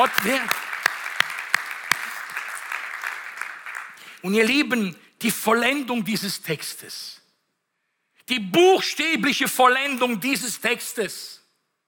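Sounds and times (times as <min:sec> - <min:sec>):
speech: 0:00.0 - 0:00.6, 0:04.2 - 0:07.2, 0:08.3 - 0:11.4
audience applause: 0:00.0 - 0:04.2.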